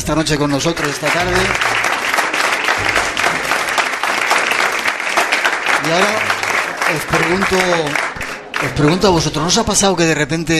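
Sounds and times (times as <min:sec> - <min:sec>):
speech: 0:00.0 - 0:01.9, 0:05.9 - 0:10.5
audience applause: 0:00.2 - 0:09.6.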